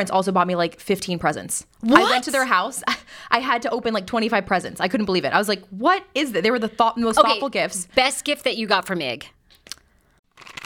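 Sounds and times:
speech: 0.0s - 9.4s
chewing a strawberry-flavoured fertility gummy: 9.6s - 10.6s.

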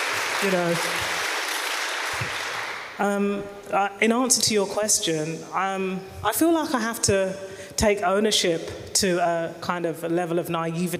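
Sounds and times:
audience applause: 0.0s - 3.0s
speech: 0.4s - 1.2s, 2.2s - 10.9s.

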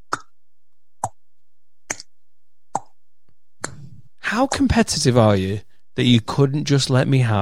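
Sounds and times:
mouth pops imitating a table tennis rally: 0.0s - 0.4s, 1.9s - 2.1s, 2.7s - 3.0s, 3.6s - 4.7s
speech: 4.3s - 7.3s.

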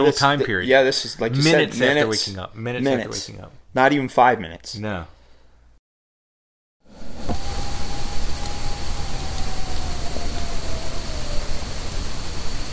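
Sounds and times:
speech: 0.0s - 5.2s
distant powerful animal howl: 6.9s - 12.7s.

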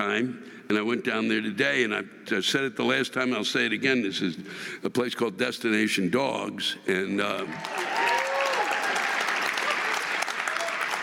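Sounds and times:
speech: 0.0s - 8.0s
room full of people applauding: 7.4s - 11.0s
faint voices and cheers: 7.5s - 11.0s.

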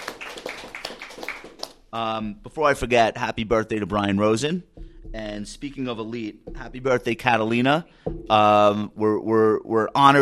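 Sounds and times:
round of applause: 0.0s - 1.9s
speech: 1.9s - 10.1s.

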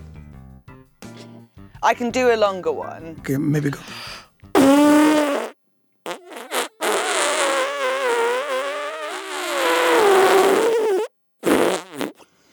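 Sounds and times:
speech: 1.8s - 4.1s
mouth-made fart noise, a blown raspberry: 3.9s - 12.3s.

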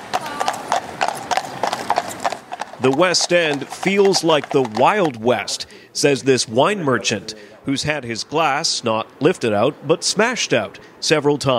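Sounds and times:
horse hooves clip-clopping on a hard street surface: 0.0s - 6.5s
speech: 2.8s - 11.5s.

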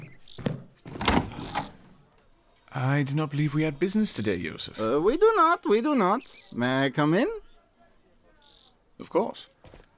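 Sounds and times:
door being opened for a visitor: 0.8s - 2.0s
speech: 2.8s - 7.4s, 9.0s - 9.8s.

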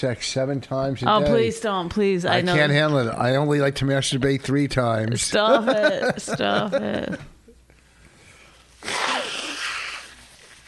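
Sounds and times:
speech: 0.0s - 7.3s
laughter: 5.4s - 7.3s
nose blowing into a microphone: 8.8s - 10.6s.

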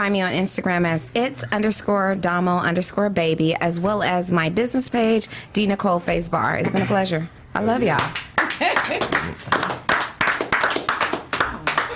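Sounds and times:
speech: 0.0s - 9.8s
soft muted clapping: 7.9s - 11.9s
laughter: 8.6s - 9.5s.

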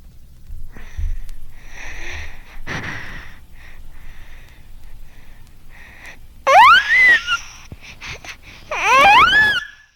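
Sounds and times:
infant high-pitched wailing cries: 6.5s - 7.5s, 8.7s - 9.9s.

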